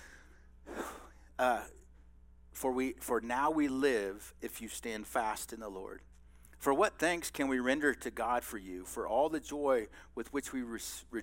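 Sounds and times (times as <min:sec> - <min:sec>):
person taking a breath while reading scripture aloud: 0:00.0 - 0:01.2
speech: 0:01.4 - 0:01.8, 0:02.6 - 0:11.2.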